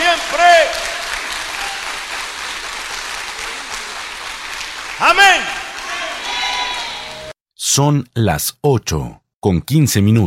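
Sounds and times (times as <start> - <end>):
audience applause: 0.0 - 7.3
speech: 7.7 - 10.2.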